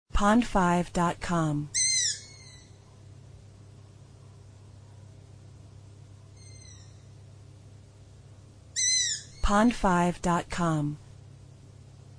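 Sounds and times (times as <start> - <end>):
speech: 0.2 - 1.8, 9.5 - 11.0
owl screaming: 1.7 - 2.8, 6.4 - 7.2, 8.8 - 9.4.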